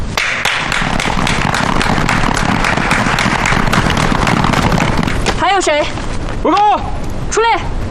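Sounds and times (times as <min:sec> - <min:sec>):
group applause: 0:00.2 - 0:05.4
speech: 0:05.6 - 0:07.7.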